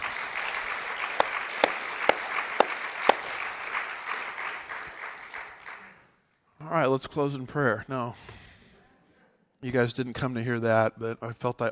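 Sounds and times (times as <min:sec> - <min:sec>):
crowd applause: 0:00.0 - 0:06.0
speech: 0:06.7 - 0:08.4, 0:09.6 - 0:11.6.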